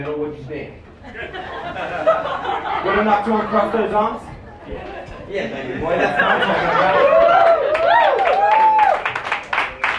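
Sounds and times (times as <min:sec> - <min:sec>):
speech: 0:00.0 - 0:07.4
laughter: 0:01.0 - 0:07.5
audience cheer: 0:06.6 - 0:09.4
scattered audience clapping: 0:06.8 - 0:09.9.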